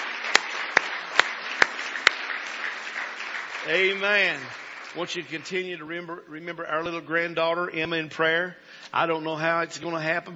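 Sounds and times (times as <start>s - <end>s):
audience clapping hands in praise: 0.0s - 5.8s
speech: 3.6s - 10.3s.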